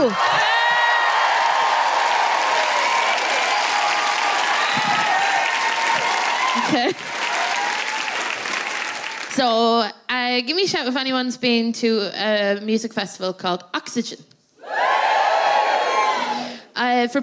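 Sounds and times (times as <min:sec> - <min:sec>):
speech: 0:00.0 - 0:00.4, 0:06.7 - 0:07.2, 0:09.4 - 0:14.3, 0:16.9 - 0:17.2
audience cheering and woohooing at a live comedy show: 0:00.0 - 0:09.3, 0:14.6 - 0:16.5
audience applauding at a live comedy show: 0:00.0 - 0:09.4.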